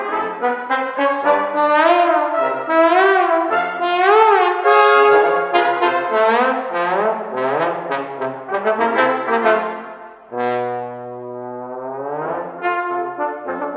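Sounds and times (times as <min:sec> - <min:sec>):
trombone: 0:00.0 - 0:13.7.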